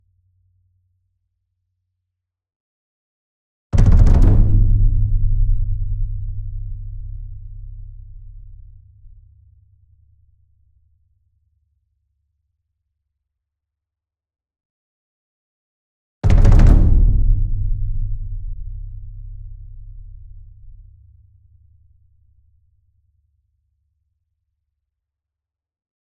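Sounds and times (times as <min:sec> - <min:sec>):
large concert bass drum roll: 0:03.8 - 0:08.9, 0:16.2 - 0:20.9.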